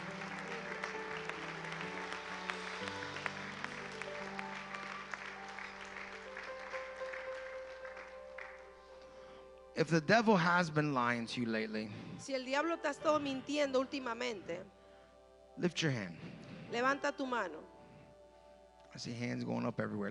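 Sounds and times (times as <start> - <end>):
audience applause: 0.0 - 9.0
speech: 9.8 - 14.8, 15.6 - 17.7, 19.0 - 20.0.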